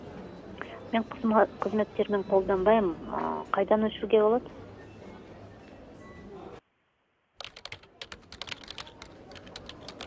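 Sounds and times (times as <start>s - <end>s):
speech: 0.9s - 4.6s
soft typing on a computer keyboard: 7.4s - 10.0s.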